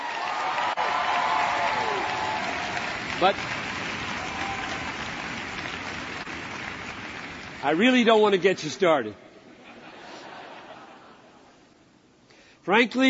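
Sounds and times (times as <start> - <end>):
audience clapping: 0.0 - 8.4
speech: 3.2 - 3.6, 7.6 - 9.2, 12.7 - 13.0
laughter: 9.5 - 11.5.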